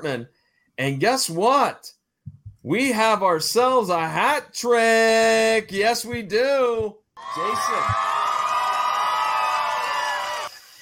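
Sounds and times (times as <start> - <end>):
speech: 0.0 - 2.0, 2.6 - 8.1
crowd cheering and whooping: 7.2 - 10.6.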